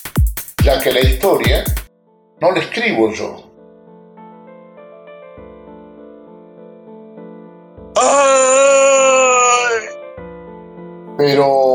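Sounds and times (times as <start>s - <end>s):
speech: 0.6s - 1.8s, 2.4s - 3.4s, 11.2s - 11.7s
harrowing scream sound effect: 8.0s - 10.0s.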